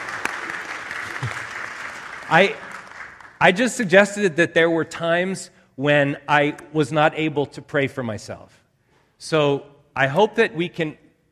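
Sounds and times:
audience clapping: 0.0 - 3.6
speech: 2.3 - 2.7, 3.4 - 8.6, 9.2 - 11.0.

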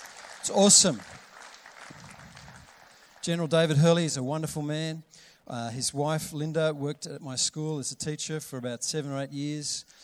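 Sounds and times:
audience clapping: 0.0 - 3.8
speech: 0.5 - 1.2, 3.2 - 10.0.

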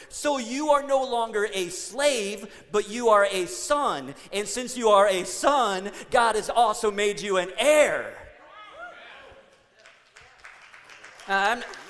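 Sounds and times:
speech: 0.1 - 8.2, 11.3 - 11.8
audience applauding: 9.5 - 11.8.

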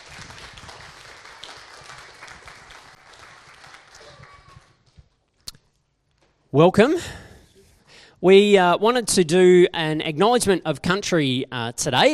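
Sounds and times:
audience applause at a church gathering: 0.0 - 5.0
speech: 6.6 - 7.2, 8.2 - 12.1.

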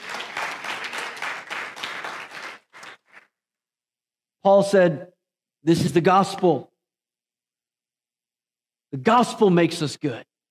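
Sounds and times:
audience applauding: 0.0 - 3.3
speech: 4.4 - 6.7, 8.9 - 10.3.

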